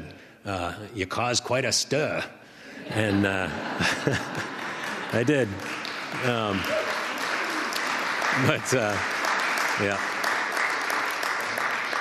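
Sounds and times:
speech: 0.4s - 6.8s, 8.4s - 9.1s, 9.8s - 10.1s
laughter: 2.7s - 5.6s
audience applause: 3.8s - 11.9s.

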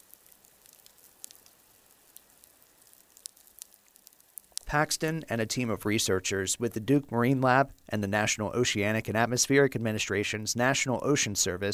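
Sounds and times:
underwater reef fish and shrimp feeding: 0.0s - 4.8s
speech: 4.7s - 11.7s.

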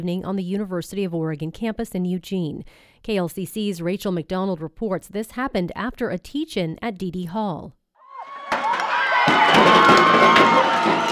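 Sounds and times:
speech: 0.0s - 7.8s, 9.2s - 11.1s
crowd cheering and shouting as a pioneer statue is pulled down with ropes at the University of Oregon: 8.1s - 11.1s.

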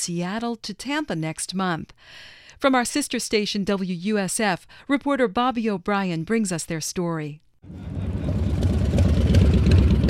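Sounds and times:
speech: 0.0s - 8.5s
motorcycle engines idling at a bike night at Quaker Steak and Lube in Clearwater: 7.7s - 10.0s.

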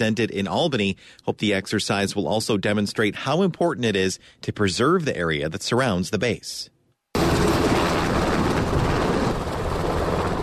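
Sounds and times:
speech: 0.0s - 7.5s
Black Hawk helicopters lifting off from Wheeler Sack Army Airfield on Fort Drum: 7.2s - 10.4s.

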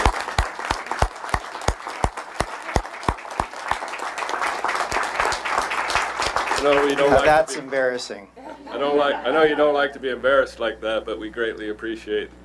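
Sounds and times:
audience applause: 0.0s - 7.5s
speech: 6.6s - 12.4s.

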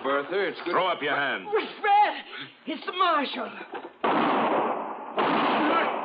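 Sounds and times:
speech: 0.2s - 3.8s
gunshot blasts in a Western radio drama: 4.0s - 6.0s.

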